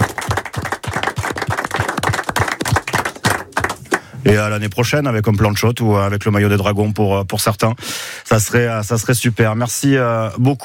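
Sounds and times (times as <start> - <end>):
audience applause: 0.0 - 4.2
speech: 4.3 - 10.6.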